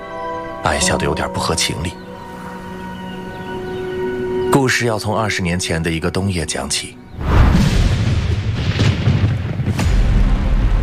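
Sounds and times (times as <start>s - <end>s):
speech: 0.6s - 2.0s, 4.7s - 7.3s
thunder clap: 7.2s - 10.8s.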